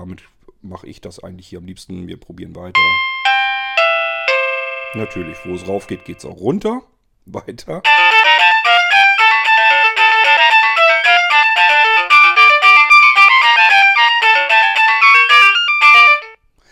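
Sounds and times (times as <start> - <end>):
speech: 0.0 - 3.4, 4.9 - 8.2
electronic doorbell chime melody being tested: 2.8 - 6.2, 7.9 - 16.4.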